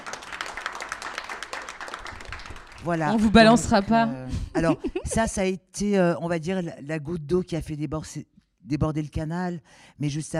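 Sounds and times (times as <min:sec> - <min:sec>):
audience applause during a talk on feminism: 0:00.0 - 0:03.8
speech: 0:02.8 - 0:10.3.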